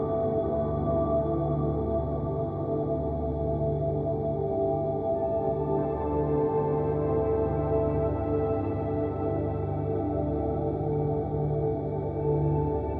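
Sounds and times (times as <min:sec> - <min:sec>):
warm angelic ambient music: 0:00.0 - 0:12.9.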